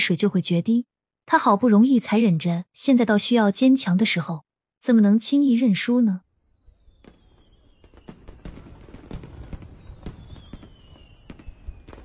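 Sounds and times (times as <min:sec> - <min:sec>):
speech: 0:00.0 - 0:06.2
fireworks exploding: 0:06.6 - 0:12.0.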